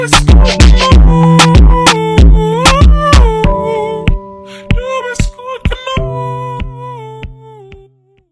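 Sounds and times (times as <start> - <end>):
brega funk music: 0.0 - 4.9.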